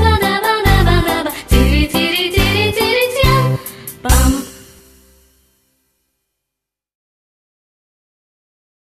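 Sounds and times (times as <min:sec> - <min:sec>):
jazz vocal warm-up: 0:00.0 - 0:05.0.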